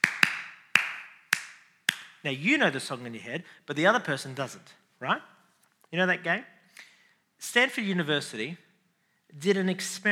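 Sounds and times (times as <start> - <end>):
hands clapping the beat of a song: 0.0 - 2.2
speech: 2.2 - 8.6, 9.3 - 10.1.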